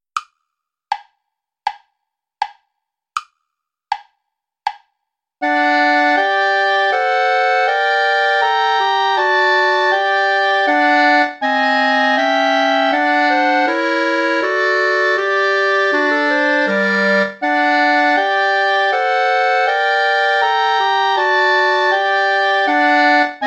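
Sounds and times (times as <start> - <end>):
play-along backing music without clarinet: 5.4 - 23.4.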